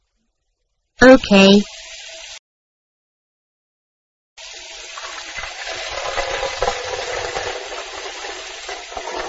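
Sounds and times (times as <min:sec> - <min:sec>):
speech: 0:01.1 - 0:01.8
tap water running into a pan: 0:01.6 - 0:02.4, 0:04.4 - 0:09.2.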